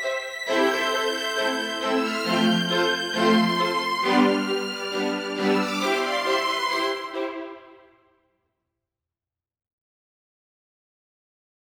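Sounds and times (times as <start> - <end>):
piano: 0.0 - 7.8.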